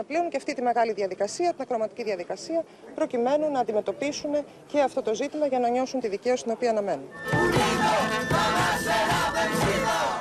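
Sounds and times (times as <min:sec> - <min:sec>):
speech: 0:00.0 - 0:10.0
crowd shouting slogans outside the Athens courthouse: 0:07.3 - 0:10.1.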